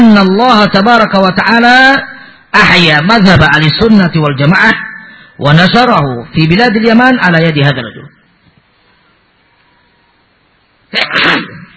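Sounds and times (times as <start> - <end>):
speech: 0.2 - 8.0, 10.9 - 11.6
sneeze: 10.9 - 11.7.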